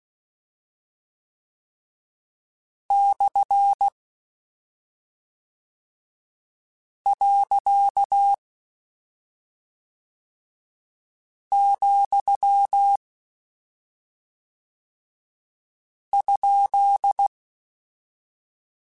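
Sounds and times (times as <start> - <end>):
Morse code CW code groups: 2.9 - 3.9, 7.1 - 8.4, 11.5 - 13.0, 16.2 - 17.3.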